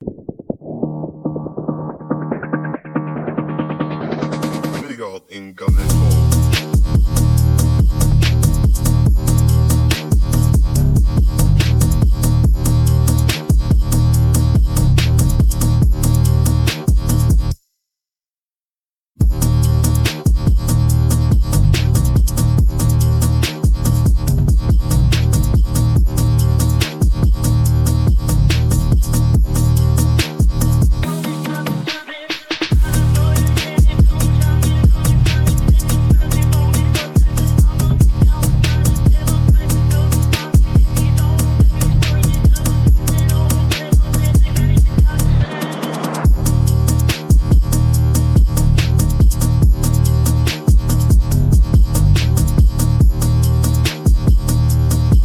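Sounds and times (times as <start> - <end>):
ethereal phonk music: 0.0 - 17.6, 19.2 - 55.2.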